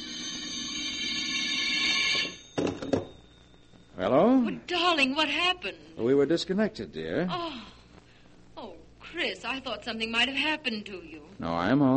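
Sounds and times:
telephone ringing: 0:00.0 - 0:05.6
speech: 0:04.0 - 0:07.8, 0:08.6 - 0:11.9.

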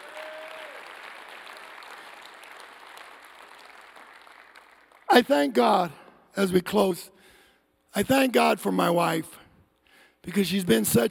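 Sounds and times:
audience hand clapping: 0:00.0 - 0:06.2
speech: 0:05.2 - 0:07.2, 0:07.9 - 0:09.4, 0:10.2 - 0:11.1.

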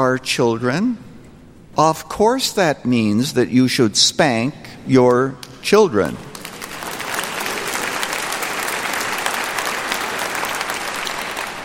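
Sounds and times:
speech: 0:00.0 - 0:01.1, 0:01.8 - 0:06.3
audience applause: 0:06.3 - 0:11.6.

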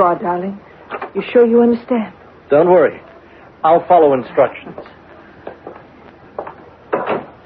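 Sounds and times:
speech: 0:00.0 - 0:05.0
door opening: 0:06.4 - 0:07.4
wooden knocks and clicks: 0:06.4 - 0:07.4
loud clunk: 0:06.9 - 0:07.4.

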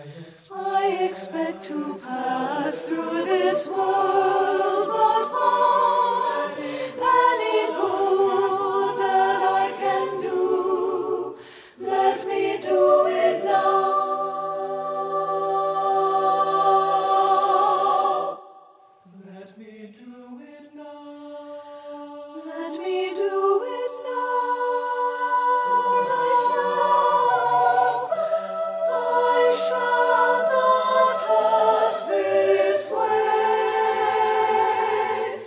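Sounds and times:
mixed choir with alto voices singing: 0:00.0 - 0:35.4.

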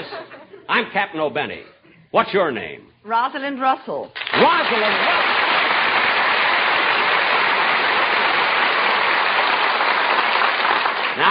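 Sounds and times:
speech: 0:00.8 - 0:05.2
waiters applauding: 0:04.2 - 0:11.2.

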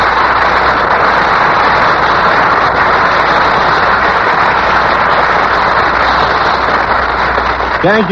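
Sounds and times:
studio audience applause in Times Square: 0:00.0 - 0:08.1.

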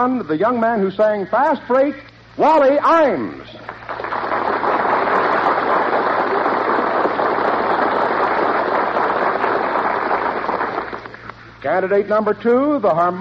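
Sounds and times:
speech: 0:00.0 - 0:04.0, 0:11.6 - 0:13.1
audience applause: 0:03.7 - 0:11.3.

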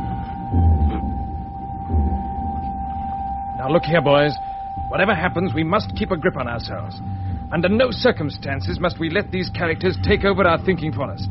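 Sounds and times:
generators throbbing in a darkened building: 0:00.0 - 0:11.2
speech: 0:03.6 - 0:11.2.

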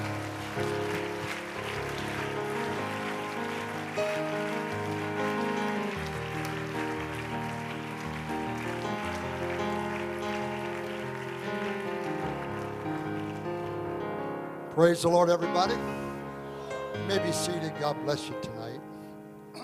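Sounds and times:
people clapping: 0:00.0 - 0:14.2, 0:16.7 - 0:18.2
speech: 0:14.8 - 0:16.0, 0:17.0 - 0:18.9.

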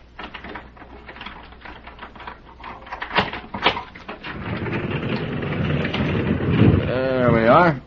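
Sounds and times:
stable door lock rattling and clicking: 0:00.2 - 0:06.8
heavy stable door scraping open: 0:03.2 - 0:07.7.

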